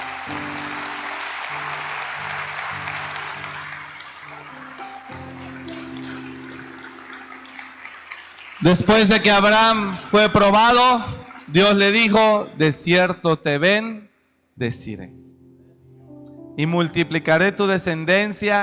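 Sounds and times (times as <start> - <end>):
audience applause: 0.0 - 12.2
speech: 8.6 - 14.0, 14.6 - 15.2, 16.6 - 18.6.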